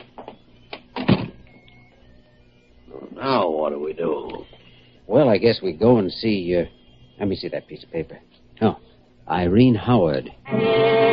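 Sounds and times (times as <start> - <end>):
door opening and closing: 0.9 - 1.4
speech: 3.3 - 11.0.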